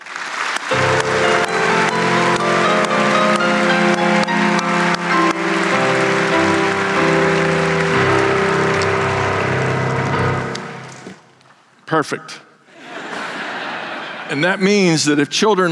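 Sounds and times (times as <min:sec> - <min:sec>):
audience clapping: 0:00.0 - 0:11.6
speech: 0:12.0 - 0:12.4, 0:14.3 - 0:15.7
laughter: 0:12.7 - 0:14.6.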